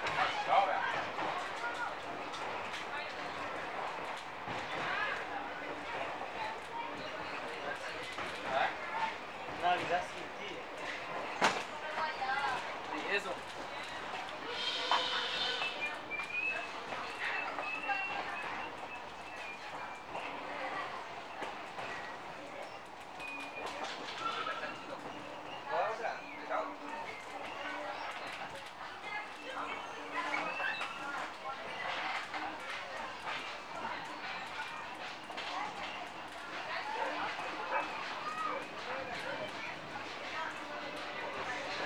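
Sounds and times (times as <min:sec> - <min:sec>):
steam train from Asuncion to Luqu: 0:00.0 - 0:41.8.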